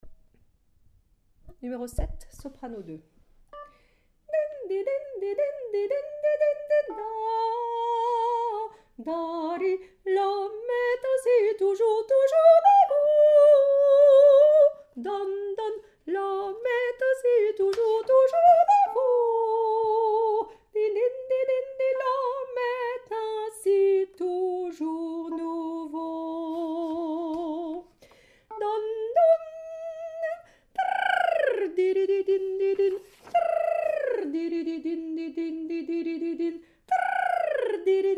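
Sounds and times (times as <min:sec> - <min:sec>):
soprano singing: 0:03.6 - 0:38.1.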